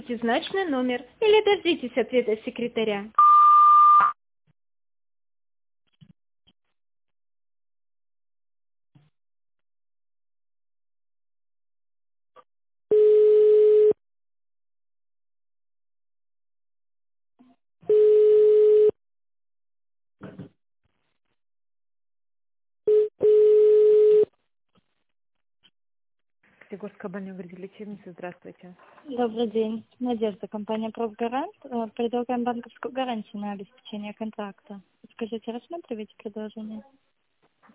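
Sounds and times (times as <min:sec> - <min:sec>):
speech: 0:00.1 - 0:03.2, 0:26.7 - 0:37.1
long steady telephone beep tones: 0:03.2 - 0:04.2, 0:12.9 - 0:14.0, 0:17.9 - 0:19.0, 0:22.9 - 0:24.3.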